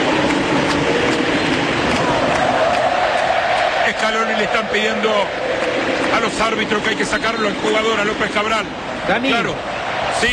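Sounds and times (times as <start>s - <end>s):
football stadium crowd roar during a stoppage in play: 0.0s - 10.3s
speech: 4.7s - 5.4s, 6.2s - 10.3s.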